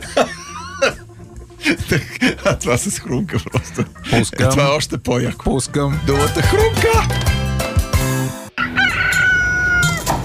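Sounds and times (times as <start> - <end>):
laughter: 0.0 - 4.6
rhythmic music: 0.0 - 8.5
speech: 1.7 - 7.4
rooster crowing: 8.6 - 10.2.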